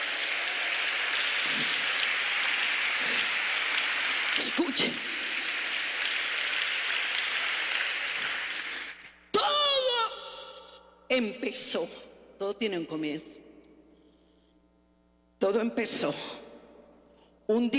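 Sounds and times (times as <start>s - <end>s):
audience applauding loudly: 0.0s - 9.2s
speech: 1.5s - 1.8s, 4.4s - 5.2s, 11.1s - 13.4s, 15.5s - 16.4s, 17.5s - 17.7s.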